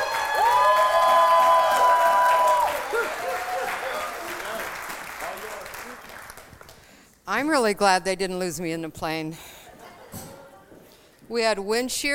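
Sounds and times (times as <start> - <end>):
high-pitched whoop: 0.0 - 3.8
short cheers: 0.0 - 4.5
audience applause welcoming a speaker: 0.0 - 6.9
speech: 7.4 - 9.5, 11.3 - 12.1.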